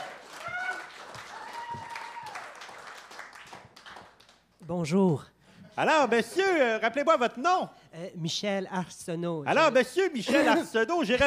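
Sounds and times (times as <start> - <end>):
audience applause: 0.0 - 4.4
speech: 4.7 - 11.2.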